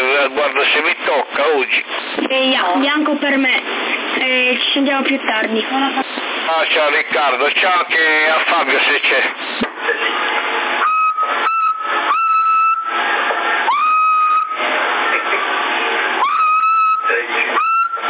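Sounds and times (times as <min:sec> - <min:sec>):
bursts of noisy CB radio static: 0:00.0 - 0:12.0, 0:14.4 - 0:16.2, 0:16.9 - 0:18.0
garbled CB radio transmission: 0:00.0 - 0:12.0, 0:13.0 - 0:18.0
speech: 0:00.2 - 0:10.7
steady whistling tones over a CB radio channel in Sassari, Italy: 0:10.8 - 0:15.3, 0:16.2 - 0:18.0.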